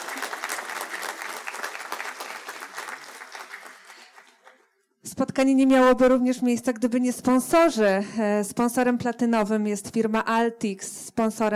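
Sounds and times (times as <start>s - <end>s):
audience applauding at a conference meeting: 0.0s - 4.7s
speech: 5.1s - 11.5s.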